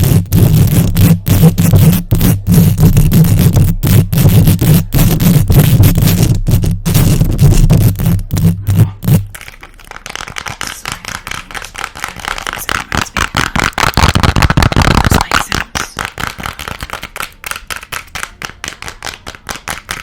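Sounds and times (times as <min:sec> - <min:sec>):
long nails scratching a microphone fast and aggressive: 0:00.0 - 0:16.0
tapping on a microphone: 0:00.0 - 0:20.0.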